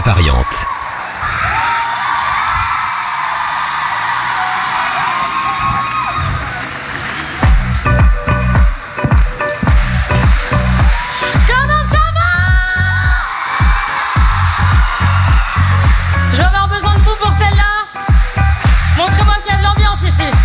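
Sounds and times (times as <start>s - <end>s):
festival crowd applauding and cheering: 0.0s - 20.4s
rhythmic low thumps of music: 7.4s - 20.4s.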